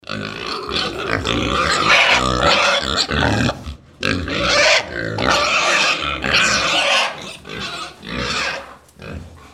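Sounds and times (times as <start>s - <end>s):
pigs grunting and squealing: 0.0s - 9.5s.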